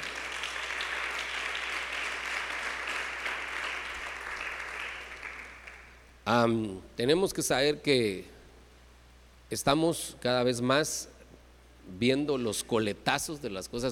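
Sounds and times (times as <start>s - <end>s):
crowd applause: 0.0s - 6.0s
speech: 6.3s - 8.3s, 9.5s - 11.1s, 11.9s - 13.9s.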